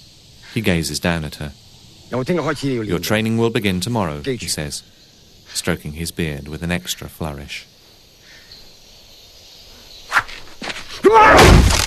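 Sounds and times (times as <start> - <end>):
speech: 0.5 - 7.8
fist smashing through a thick wooden plank: 11.0 - 11.8.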